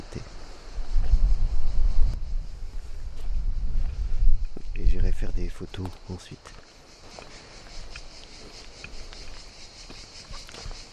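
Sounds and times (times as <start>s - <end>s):
strong wind blowing: 0.1s - 5.6s
speech: 5.6s - 6.8s.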